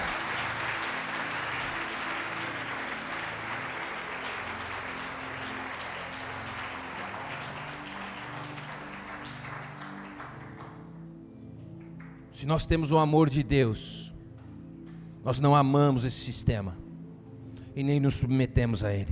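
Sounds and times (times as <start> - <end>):
audience applause: 0.0 - 11.0
speech: 12.4 - 14.0, 15.2 - 16.8, 17.8 - 19.0.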